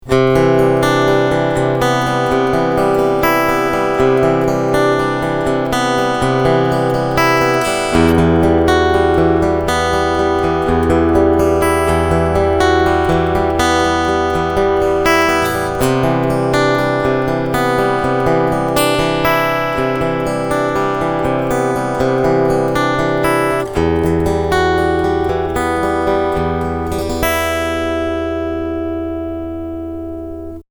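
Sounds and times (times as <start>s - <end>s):
string picking: 0.0s - 30.6s.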